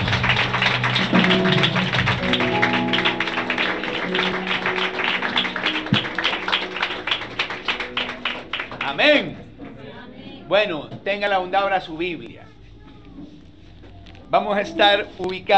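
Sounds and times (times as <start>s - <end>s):
audience applause: 0.0s - 9.4s
speech: 10.5s - 12.5s, 14.3s - 15.5s.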